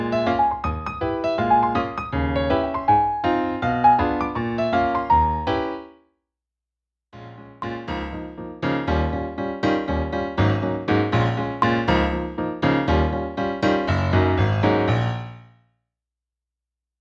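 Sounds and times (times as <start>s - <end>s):
keyboard playing: 0.2s - 5.8s, 7.2s - 15.1s.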